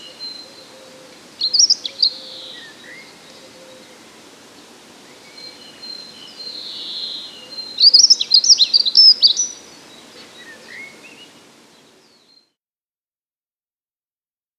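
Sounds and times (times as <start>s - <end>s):
dunnock singing: 0.0s - 4.0s, 5.0s - 12.5s.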